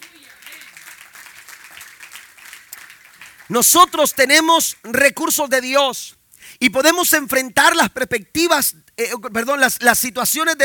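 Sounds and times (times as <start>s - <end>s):
audience applause: 0.0s - 4.2s
speech: 3.5s - 10.6s.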